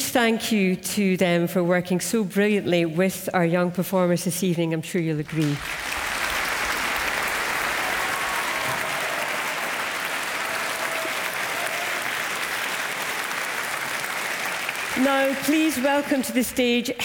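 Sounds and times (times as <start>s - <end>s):
speech: 0.1s - 5.9s, 15.3s - 17.0s
concert audience applause after an orchestra's performance: 5.4s - 16.4s.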